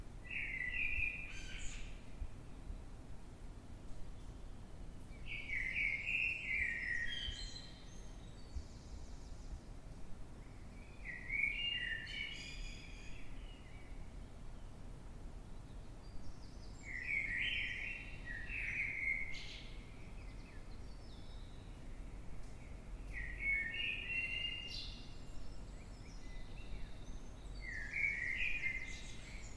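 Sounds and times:
Eurasian blackbird singing warbled phrases at night in London: 0.3 - 2.0, 5.1 - 9.4, 10.5 - 14.0, 15.7 - 29.5.

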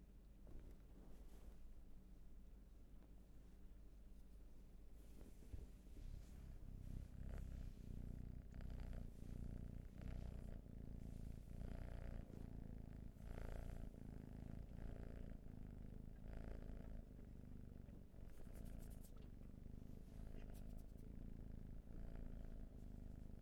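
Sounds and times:
cat purring: 0.3 - 23.4
rustling: 0.4 - 2.1, 3.0 - 13.9.

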